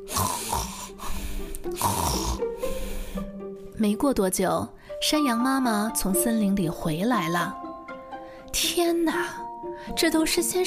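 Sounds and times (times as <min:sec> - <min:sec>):
sleeping wolf snoring: 0:00.0 - 0:01.0, 0:01.7 - 0:02.6
speech: 0:03.8 - 0:07.6, 0:08.8 - 0:10.6.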